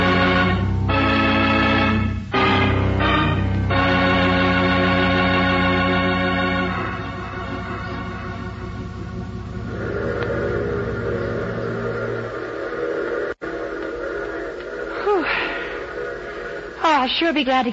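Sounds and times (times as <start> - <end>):
train whistle: 0.0 - 8.7
train arriving: 0.0 - 17.7
speech: 17.2 - 17.7.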